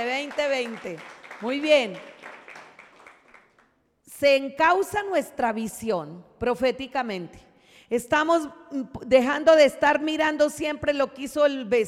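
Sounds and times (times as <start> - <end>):
speech: 0.0 - 2.2, 4.2 - 11.8
audience applause: 0.2 - 3.6.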